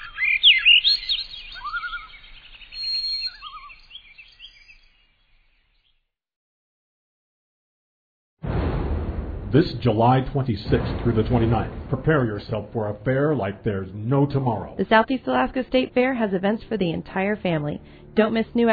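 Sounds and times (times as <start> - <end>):
birds twittering with quick chirps and warbled trills: 0.0 - 6.0
abrupt loud burst: 8.4 - 14.8
speech: 9.5 - 18.7.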